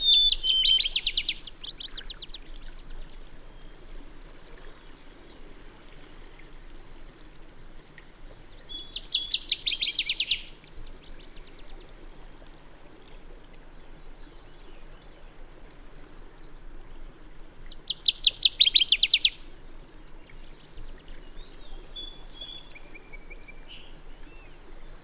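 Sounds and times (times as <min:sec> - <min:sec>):
bird song with fast trill of high notes: 0:00.0 - 0:02.4, 0:08.5 - 0:10.9, 0:17.7 - 0:19.4, 0:21.4 - 0:24.6.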